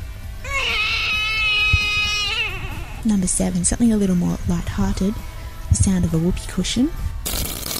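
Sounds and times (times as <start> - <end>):
baby crying: 0.4 - 3.1
speech: 3.0 - 7.0.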